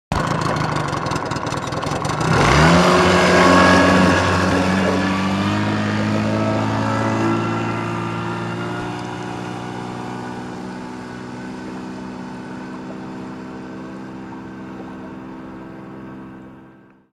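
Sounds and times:
boat engine moving away: 0.1s - 17.1s.

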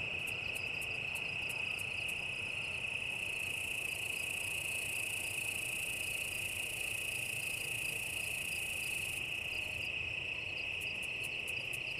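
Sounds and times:
cicada song high-pitched drone: 0.0s - 11.9s.

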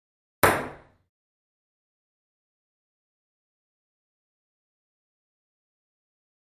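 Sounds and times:
single ping pong ball: 0.4s - 1.0s.

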